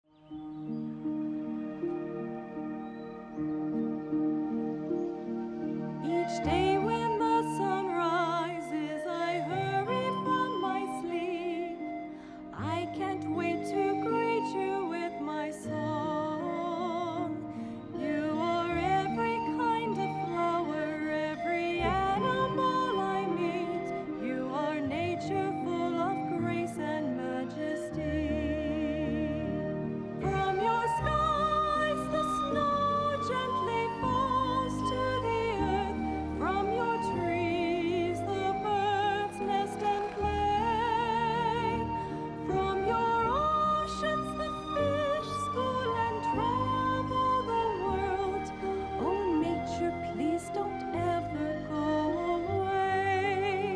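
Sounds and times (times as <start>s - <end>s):
series music: 0.2s - 53.7s.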